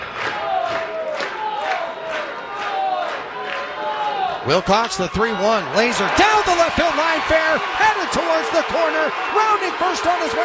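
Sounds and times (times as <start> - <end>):
raucous stadium crowd cheering: 0.0 - 10.4
speech: 4.5 - 10.4.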